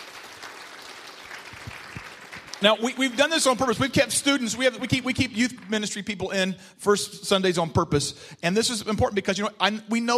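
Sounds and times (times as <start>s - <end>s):
audience applause: 0.0s - 3.4s
speech: 2.6s - 10.1s.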